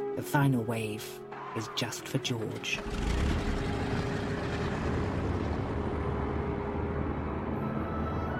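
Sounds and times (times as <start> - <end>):
speech: 0.2 - 3.5
airplane engine gathering speed and lifting off into a twilight sky: 2.9 - 8.3.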